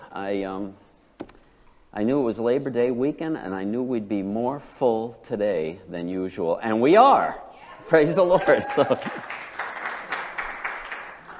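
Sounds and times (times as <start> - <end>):
speech: 0.2 - 0.8, 2.0 - 9.2
audience applauding: 8.2 - 11.3.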